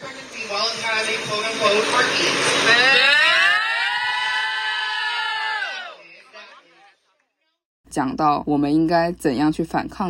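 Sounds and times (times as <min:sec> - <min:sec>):
speech: 0:00.5 - 0:03.1, 0:08.0 - 0:10.0
protest crowd booing: 0:02.6 - 0:07.2.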